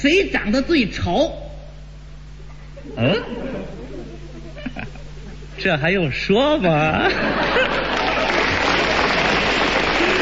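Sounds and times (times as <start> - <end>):
speech: 0.0 - 1.4, 2.8 - 3.8, 5.6 - 7.8
laughter: 2.6 - 5.6, 6.6 - 10.2
audience applause: 7.4 - 10.2.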